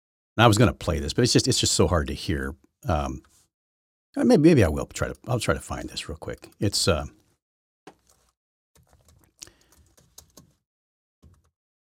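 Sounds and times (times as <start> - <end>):
speech: 0.4 - 3.3, 4.2 - 7.2
typing on a computer keyboard: 7.9 - 10.6, 11.2 - 11.5.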